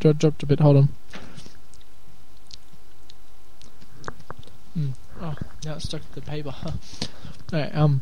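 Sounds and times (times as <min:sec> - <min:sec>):
speech: 0:00.0 - 0:01.0, 0:04.8 - 0:08.0
quiet chewing: 0:01.1 - 0:07.6
teeth biting through a hard lollipop: 0:01.7 - 0:05.0.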